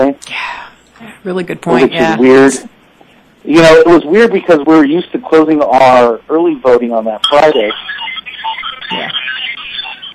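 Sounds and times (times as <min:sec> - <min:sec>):
speech: 0:01.2 - 0:02.8, 0:03.4 - 0:08.1, 0:08.9 - 0:09.4
novelty phone ringtone with warbling chattering electronic tune: 0:07.2 - 0:10.1.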